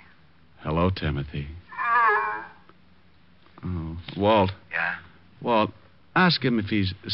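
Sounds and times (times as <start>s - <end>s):
speech: 0.6s - 1.6s, 3.6s - 7.1s
flippered animal honking: 1.7s - 2.6s.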